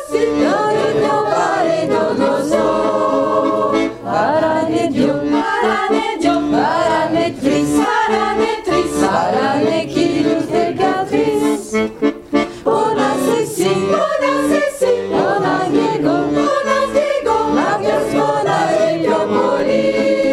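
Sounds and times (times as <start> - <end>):
altos and sopranos singing: 0.0 - 20.3.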